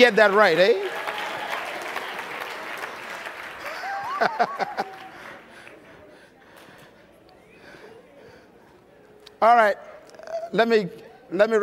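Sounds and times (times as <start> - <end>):
speech: 0.0 - 1.0, 4.2 - 4.9, 9.4 - 9.9, 10.5 - 11.6
audience clapping hands: 0.0 - 6.2
laughter: 3.6 - 6.2.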